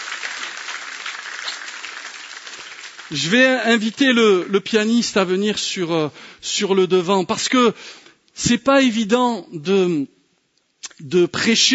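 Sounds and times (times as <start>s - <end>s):
congregation applauding in church to acclaim Jesus: 0.0s - 4.7s
speech: 3.1s - 10.2s, 10.9s - 11.7s.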